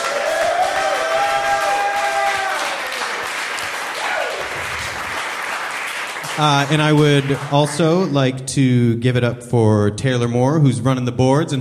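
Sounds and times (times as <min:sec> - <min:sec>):
live audience applause: 0:00.0 - 0:08.1
speech: 0:06.4 - 0:11.6.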